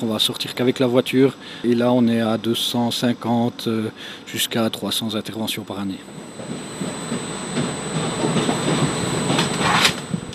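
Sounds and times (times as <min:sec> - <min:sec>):
speech: 0:00.0 - 0:06.7
fire-fighting and rescue train running on rails: 0:06.1 - 0:10.3.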